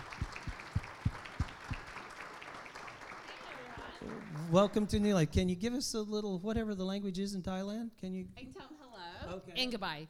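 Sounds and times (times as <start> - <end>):
church congregation clapping to welcome a guest: 0.0 - 5.2
speech: 4.5 - 8.7, 9.3 - 10.0.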